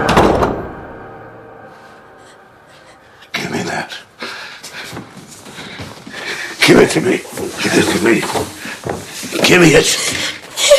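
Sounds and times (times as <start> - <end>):
door being shut: 0.0 - 0.8
speech: 6.9 - 8.6, 9.5 - 10.2.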